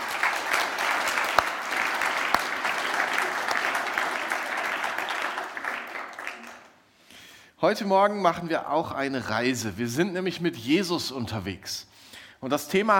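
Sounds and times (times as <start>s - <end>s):
audience applause: 0.0s - 6.8s
speech: 7.6s - 12.9s.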